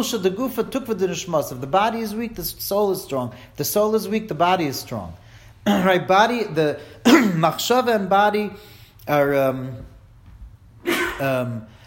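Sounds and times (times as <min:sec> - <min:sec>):
speech: 0:00.0 - 0:09.9, 0:10.8 - 0:11.7
sneeze: 0:07.0 - 0:07.4, 0:10.8 - 0:11.5.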